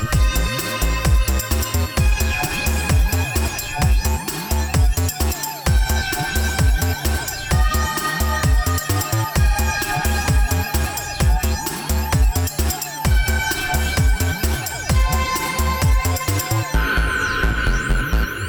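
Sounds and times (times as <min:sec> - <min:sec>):
sinister music loop: 0:00.0 - 0:18.3.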